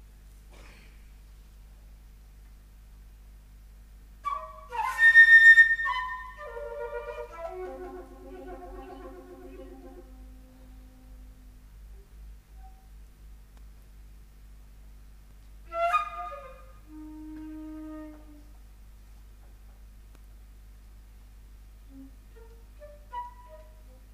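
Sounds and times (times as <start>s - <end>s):
flute: 4.2s - 11.6s, 15.7s - 18.6s, 21.9s - 24.1s.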